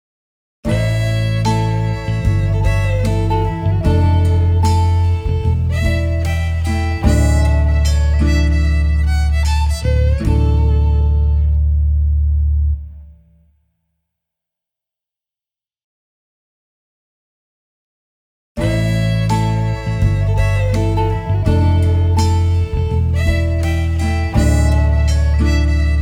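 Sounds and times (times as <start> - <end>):
cowboy music sting: 0.7 - 11.9, 18.6 - 26.0.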